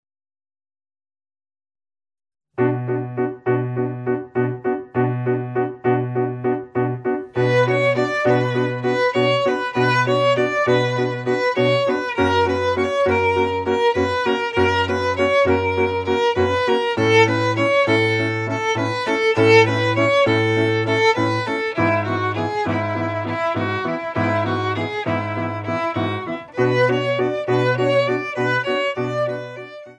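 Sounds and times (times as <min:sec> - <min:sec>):
Argentine tango music: 0:02.6 - 0:29.9.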